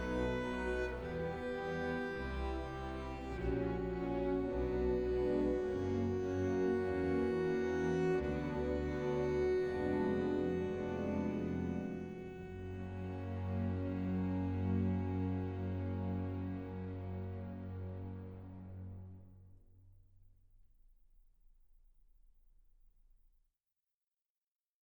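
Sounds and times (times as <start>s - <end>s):
arrangement for cello orchestra: 0.0s - 19.2s.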